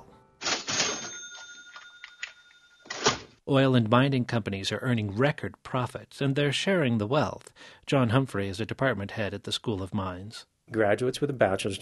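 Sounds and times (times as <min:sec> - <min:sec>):
noon bell tolling at the Colorado School of Mines: 0:00.9 - 0:02.8
speech: 0:03.5 - 0:11.8.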